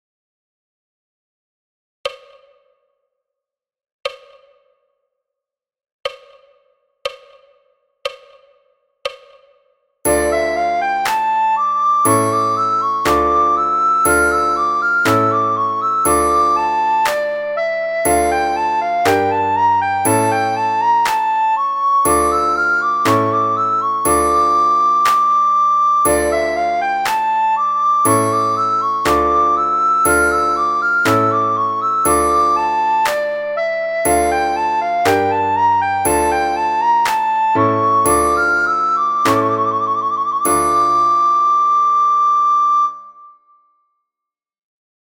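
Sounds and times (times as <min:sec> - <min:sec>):
soprano recorder playing at a fast tempo: 0:10.1 - 0:43.3.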